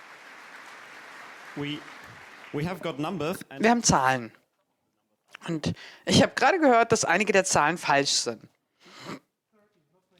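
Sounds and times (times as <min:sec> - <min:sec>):
audience applause: 0:00.0 - 0:03.4
speech: 0:01.6 - 0:04.4, 0:05.3 - 0:09.2.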